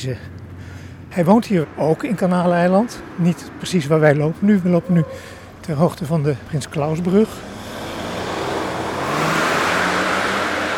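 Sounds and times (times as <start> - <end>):
speech: 0.0 - 0.4, 1.1 - 7.6
road noise: 0.0 - 10.7
car engine revving: 6.7 - 10.7.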